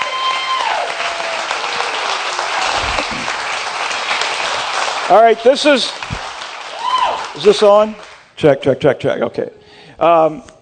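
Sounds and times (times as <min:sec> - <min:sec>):
church congregation applauding: 0:00.0 - 0:08.3
speech: 0:05.1 - 0:06.1, 0:07.4 - 0:10.5.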